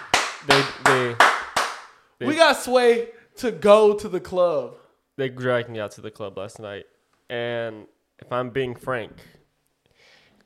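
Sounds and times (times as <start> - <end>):
people clapping: 0.0 - 2.0
speech: 2.2 - 9.4.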